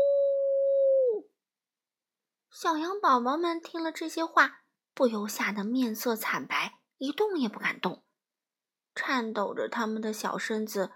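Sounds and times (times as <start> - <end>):
person imitating a predator's howl: 0.0 - 1.2
speech: 2.6 - 8.0, 9.0 - 10.9.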